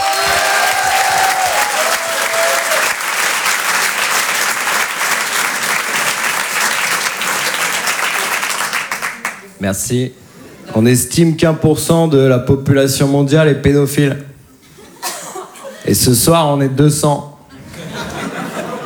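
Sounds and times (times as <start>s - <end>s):
audience applause: 0.0s - 9.5s
speech: 9.6s - 14.3s, 15.9s - 17.3s
laughter: 14.6s - 15.9s, 17.5s - 18.8s.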